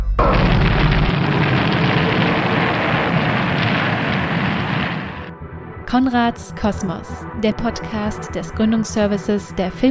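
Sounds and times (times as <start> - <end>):
rocket launch: 0.2 - 5.3
speech: 5.9 - 9.8.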